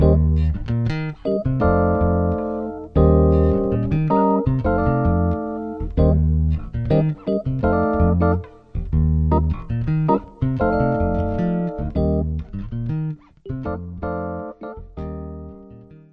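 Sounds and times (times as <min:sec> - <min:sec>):
jazz funk groove: 0:00.0 - 0:15.4.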